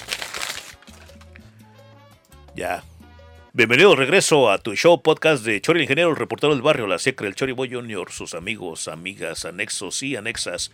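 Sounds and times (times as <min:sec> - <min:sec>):
paper notes being torn up and crumpled: 0:00.0 - 0:01.4
speech: 0:02.6 - 0:02.9, 0:03.6 - 0:10.7.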